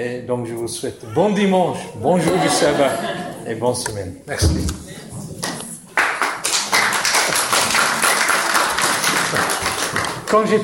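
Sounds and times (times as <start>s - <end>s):
speech: 0.0s - 5.2s, 10.3s - 10.6s
laughter: 2.1s - 3.6s
audience applause: 6.0s - 10.4s.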